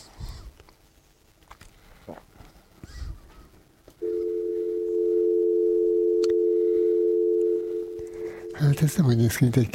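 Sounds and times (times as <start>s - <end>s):
telephone dial tone while a call is placed: 4.0s - 8.6s
speech: 8.8s - 9.7s.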